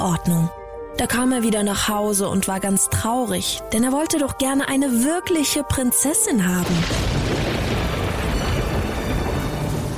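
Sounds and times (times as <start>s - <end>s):
speech: 0.0s - 7.4s
rolling thunder: 6.7s - 9.9s.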